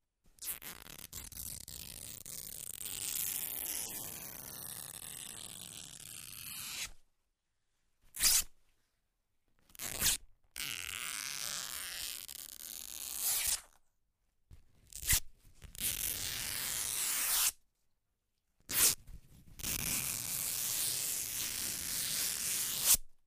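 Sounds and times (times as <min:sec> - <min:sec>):
fabric being torn: 0:00.4 - 0:07.0, 0:08.1 - 0:08.5, 0:09.7 - 0:13.8, 0:14.9 - 0:17.6, 0:18.7 - 0:19.0, 0:19.6 - 0:23.1.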